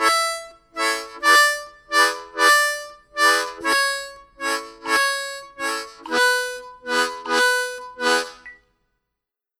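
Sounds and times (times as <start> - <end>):
harmonica tongue blocking exercises: 0.0 - 8.5.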